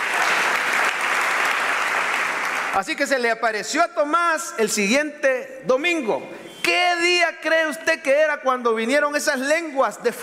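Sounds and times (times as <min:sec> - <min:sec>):
people applauding: 0:00.0 - 0:03.0
speech: 0:02.8 - 0:10.2.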